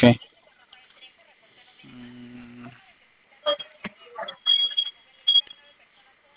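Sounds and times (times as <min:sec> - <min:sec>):
loud high-pitched detector alarm beep: 0:03.5 - 0:05.6.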